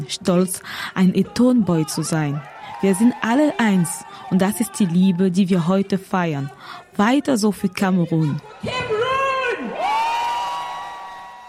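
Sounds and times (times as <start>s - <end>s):
speech: 0.0s - 9.0s
crowd cheering: 1.1s - 5.8s, 7.7s - 11.4s.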